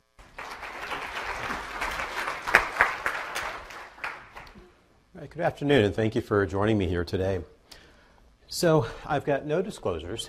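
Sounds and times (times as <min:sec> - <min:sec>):
audience applause at a PAINWeek pain-management conference session: 0:00.2 - 0:04.5
speech: 0:05.3 - 0:07.5, 0:08.5 - 0:10.2.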